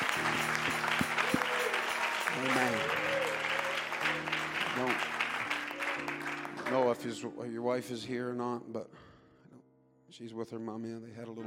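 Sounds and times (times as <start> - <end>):
audience applauding: 0.0 - 7.1
speech: 7.0 - 9.1, 10.2 - 11.4.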